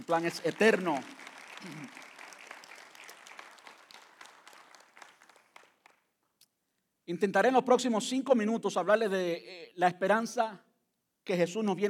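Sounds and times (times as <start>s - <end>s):
audience applause: 0.0s - 6.0s
speech: 0.1s - 2.1s, 7.1s - 11.8s.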